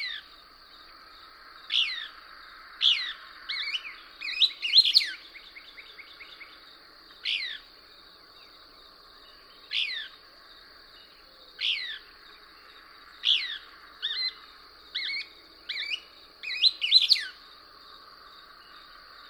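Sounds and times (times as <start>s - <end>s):
thin insect hum: 0.0s - 19.2s
Couch's Kingbird singing: 1.6s - 2.2s, 2.8s - 10.2s, 10.9s - 17.4s.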